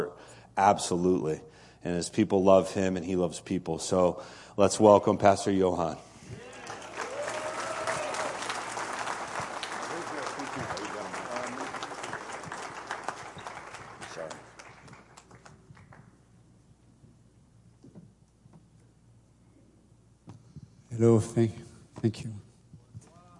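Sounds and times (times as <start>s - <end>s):
speech: 0.6s - 6.4s, 21.1s - 22.4s
crowd applauding: 6.4s - 16.2s.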